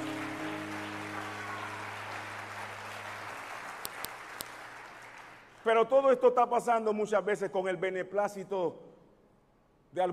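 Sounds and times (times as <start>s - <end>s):
audience clapping: 0.0s - 5.7s
speech: 5.7s - 8.9s, 9.9s - 10.1s.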